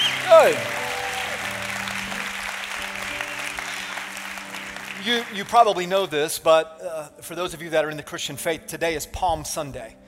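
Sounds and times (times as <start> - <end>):
whistles: 0.0 - 0.8
crowd clapping: 0.0 - 6.1
speech: 0.4 - 0.8, 5.0 - 10.0.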